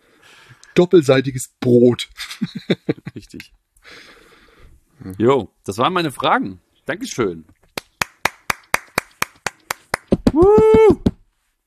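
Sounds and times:
speech: 0.8s - 3.5s, 5.1s - 7.6s
laughter: 2.2s - 3.4s
applause: 7.8s - 10.7s.

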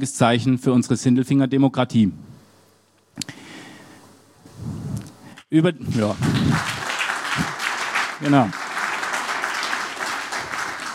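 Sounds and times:
speech: 0.0s - 2.3s, 5.5s - 6.8s, 8.2s - 8.6s
audience applause: 5.9s - 10.9s.

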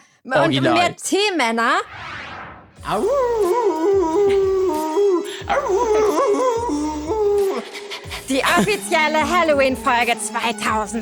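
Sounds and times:
speech: 0.2s - 2.1s, 2.8s - 4.3s, 5.5s - 6.4s, 8.3s - 11.0s
person imitating a small dog howling: 2.9s - 7.6s.

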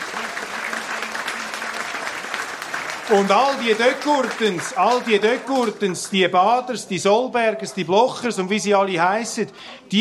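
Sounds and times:
audience applause at a political party gathering: 0.0s - 6.4s
speech: 3.1s - 9.9s.

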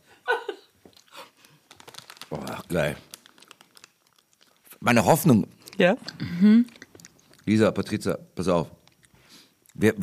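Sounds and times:
person giggling: 0.2s - 0.8s
snack bag crinkling while eating: 0.9s - 7.6s, 8.8s - 9.8s
speech: 2.3s - 3.1s, 4.8s - 6.8s, 7.5s - 8.8s, 9.8s - 10.0s.

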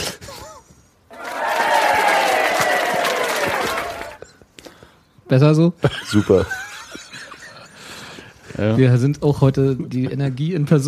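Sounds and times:
played-in applause: 1.1s - 4.2s
crowd cheering: 1.1s - 4.3s
laughter: 3.3s - 4.4s, 5.8s - 8.2s
speech: 5.3s - 6.6s, 8.6s - 10.8s.

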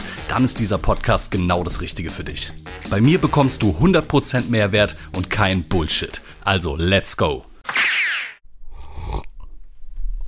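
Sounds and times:
speech: 0.3s - 7.5s
hearty sip of coffee: 8.6s - 9.5s.

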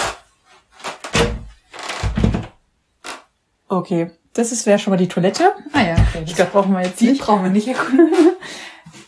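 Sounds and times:
door clunking and rattling as it is opened: 1.1s - 2.6s
speech: 3.7s - 8.7s.

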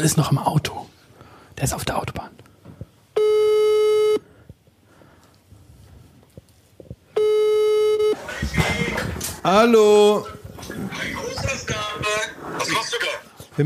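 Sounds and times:
speech: 0.0s - 0.8s, 1.6s - 2.4s, 9.4s - 10.8s, 12.6s - 13.6s
telephone ringing tone during outgoing call: 3.2s - 4.2s, 7.2s - 9.0s.

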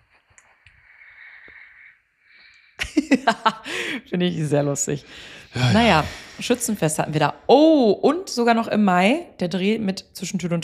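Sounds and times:
speech: 3.0s - 10.6s
loud snoring from a phone video: 5.6s - 6.4s.

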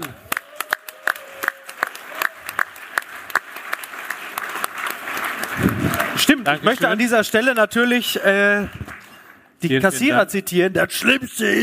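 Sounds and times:
audience applause: 0.0s - 7.7s
speech: 6.3s - 8.8s, 9.6s - 11.6s.

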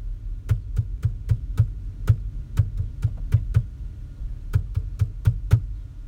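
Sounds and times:
knocking out a children's song rhythm: 0.4s - 3.8s, 4.5s - 5.8s.

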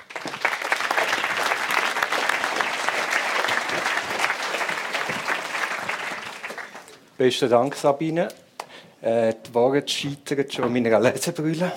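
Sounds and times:
live audience applause: 0.0s - 7.1s
speech: 7.2s - 8.4s, 9.0s - 11.7s.

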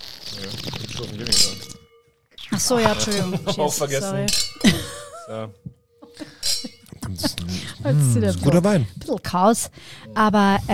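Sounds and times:
speech: 0.4s - 1.8s, 2.6s - 6.3s, 7.2s - 10.7s
wine glasses clinking in a toast: 0.9s - 7.1s
laughter: 2.8s - 8.2s.

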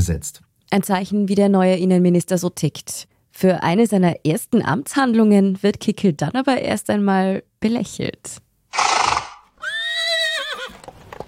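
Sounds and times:
speech: 0.0s - 8.8s
horse snorting and snuffling: 8.7s - 9.5s
horse neighing: 8.8s - 10.8s.

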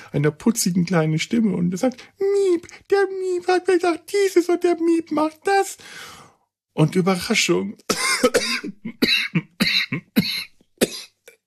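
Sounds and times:
speech: 0.1s - 6.2s, 6.8s - 10.9s
person coughing after choking on something: 7.9s - 11.4s.

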